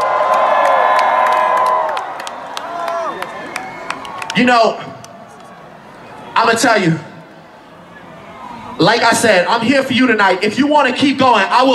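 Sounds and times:
high whoops from a concert crowd: 0.0 - 4.4
people clapping: 0.0 - 5.6
concert crowd cheering and shouting: 0.0 - 11.0
speech: 4.4 - 5.0, 6.4 - 7.1, 8.8 - 11.7.

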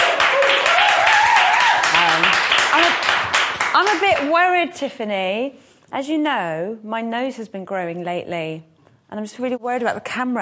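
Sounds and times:
round of applause: 0.0 - 4.3
speech: 3.8 - 10.4.

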